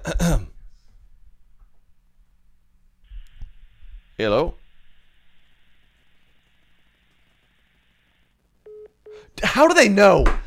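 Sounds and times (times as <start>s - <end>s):
faint telephone line hiss: 3.1s - 9.3s
speech: 4.2s - 4.6s, 9.6s - 10.4s
telephone busy tone beep: 8.7s - 9.2s.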